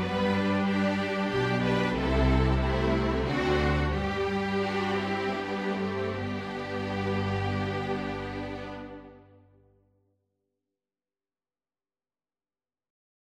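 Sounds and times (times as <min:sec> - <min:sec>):
string orchestra: 0:00.0 - 0:09.4.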